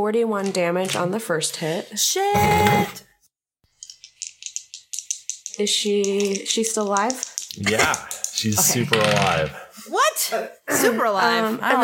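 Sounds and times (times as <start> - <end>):
speech: 0.0 - 3.1, 5.6 - 11.8
many dice rolling: 3.7 - 9.4.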